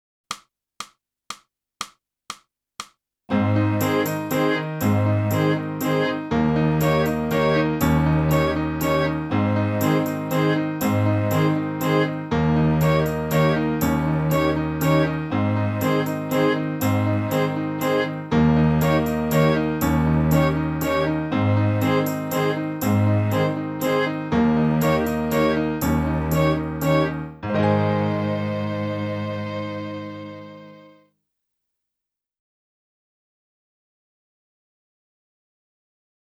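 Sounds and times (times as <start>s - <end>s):
clarinet: 3.3s - 31.0s.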